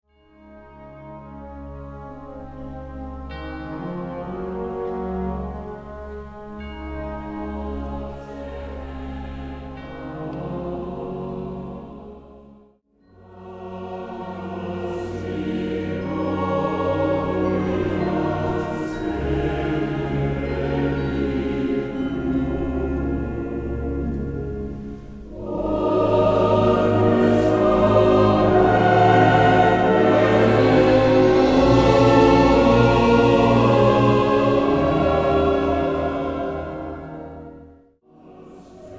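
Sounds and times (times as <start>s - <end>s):
mixed choir or children's choir singing a villancico: 0.8s - 38.9s
band playing: 21.6s - 37.1s.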